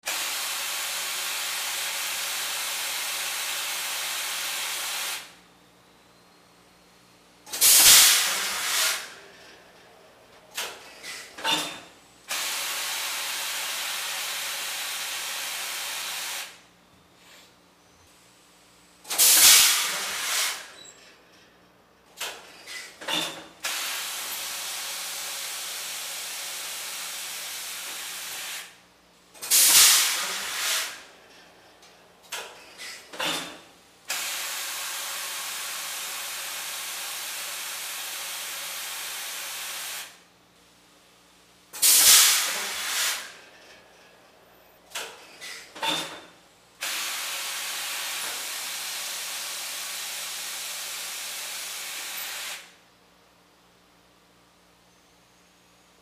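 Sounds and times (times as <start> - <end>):
steam press bursts: 0.1 - 5.4, 7.5 - 9.3, 10.5 - 16.7, 19.1 - 20.8, 22.3 - 28.8, 29.4 - 31.2, 32.4 - 40.2, 41.8 - 43.4, 46.8 - 52.8.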